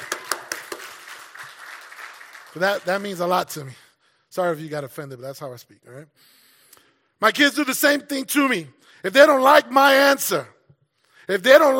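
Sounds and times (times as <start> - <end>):
audience clapping: 0.0 - 3.7
speech: 2.6 - 6.4, 7.2 - 10.6, 11.3 - 11.7.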